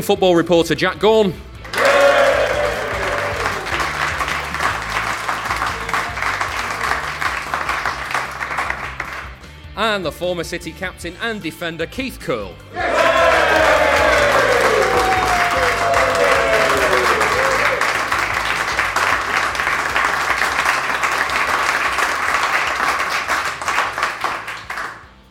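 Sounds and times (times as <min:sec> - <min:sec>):
speech: 0:00.0 - 0:01.5, 0:09.9 - 0:13.0
audience cheering and applause: 0:01.6 - 0:09.2, 0:12.8 - 0:25.1.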